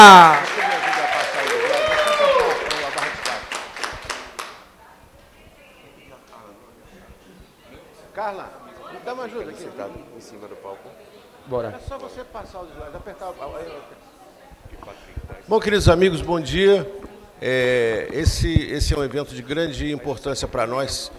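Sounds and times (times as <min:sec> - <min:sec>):
audience applause: 0:00.0 - 0:04.6
speech: 0:11.5 - 0:14.1, 0:14.8 - 0:21.1.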